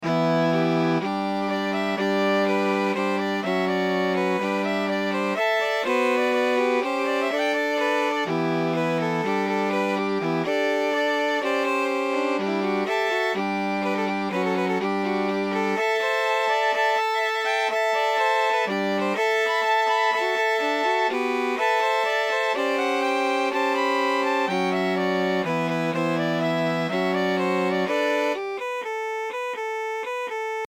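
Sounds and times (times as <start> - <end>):
viola: 0.0 - 30.6.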